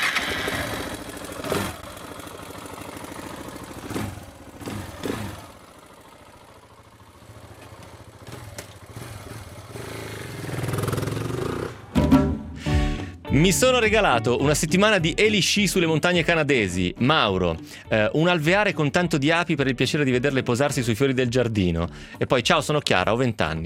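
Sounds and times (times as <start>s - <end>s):
four-stroke motorcycle engine revving then stalling: 0.0s - 12.6s
speech: 13.4s - 23.6s.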